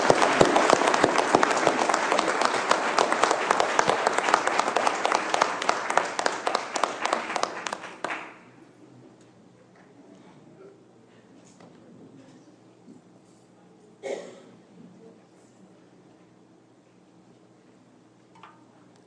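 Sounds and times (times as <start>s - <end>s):
audience applause: 0.0s - 8.5s.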